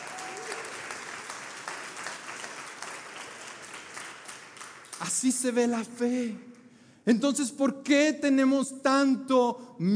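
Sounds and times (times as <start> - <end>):
audience applause: 0.0 - 5.2
speech: 5.0 - 6.5, 7.1 - 9.9.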